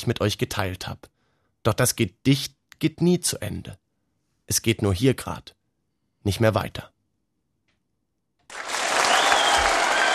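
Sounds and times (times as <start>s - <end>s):
speech: 0.0s - 3.8s, 4.5s - 5.6s, 6.2s - 6.9s
large crowd applause: 8.5s - 10.1s.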